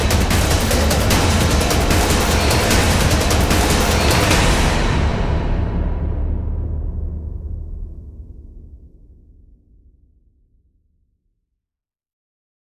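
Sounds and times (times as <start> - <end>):
percussion: 0.0 - 8.7.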